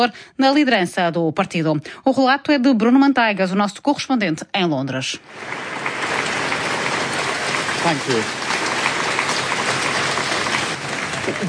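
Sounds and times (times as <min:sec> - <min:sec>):
speech: 0:00.0 - 0:06.2, 0:07.8 - 0:08.4, 0:11.3 - 0:11.4
staff applause: 0:05.5 - 0:11.4.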